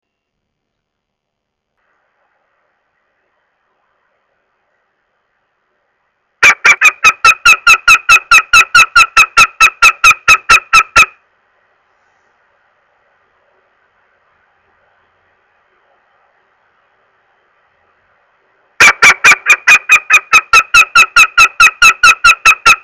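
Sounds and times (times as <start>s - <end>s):
northern goshawk uttering harsh nasal kek calls: 6.4s - 11.2s, 18.8s - 22.8s.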